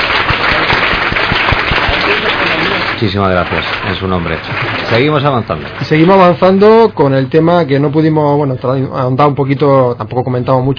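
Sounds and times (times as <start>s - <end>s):
live studio audience ovation: 0.0s - 6.8s
speech: 3.0s - 10.7s.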